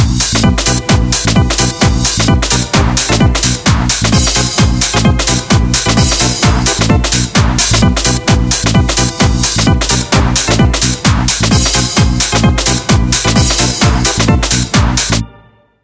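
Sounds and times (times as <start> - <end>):
rave jingle ringtone: 0.2 - 15.8.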